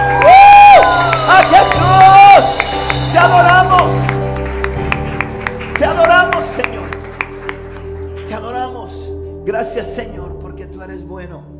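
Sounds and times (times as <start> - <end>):
audience applauding loudly: 0.0 - 8.6.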